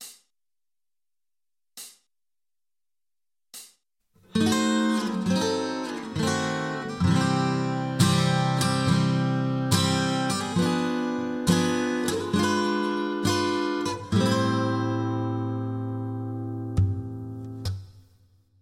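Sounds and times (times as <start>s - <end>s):
guitar: 4.2s - 17.9s.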